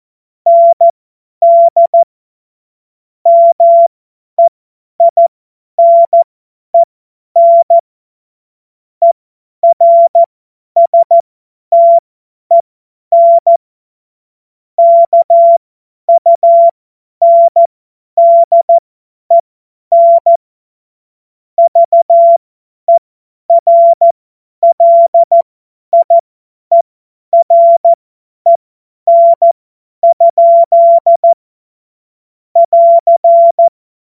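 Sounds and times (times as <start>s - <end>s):
CW Morse code beeps: 0.5s - 2.1s, 3.3s - 6.2s, 6.8s - 7.8s, 9.6s - 11.2s, 11.8s - 12.6s, 13.2s - 13.6s, 14.8s - 20.4s, 21.6s - 26.8s, 27.4s - 31.4s, 32.6s - 33.7s.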